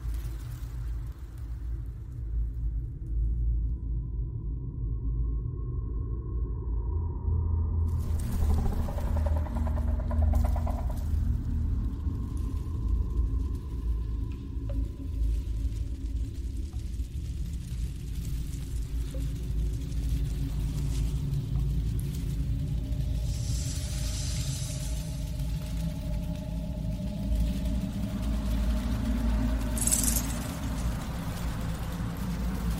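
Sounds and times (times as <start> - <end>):
sharp bright crackle: 0.0 - 2.8, 7.9 - 32.7
alien hive deep constant rumble: 0.0 - 32.7.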